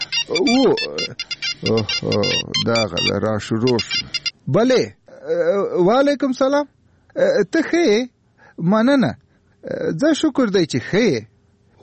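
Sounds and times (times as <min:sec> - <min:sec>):
phone ringing with electronic ringtone pulses: 0:00.0 - 0:04.4
low voiced sound: 0:00.3 - 0:03.1
speech: 0:00.3 - 0:11.8.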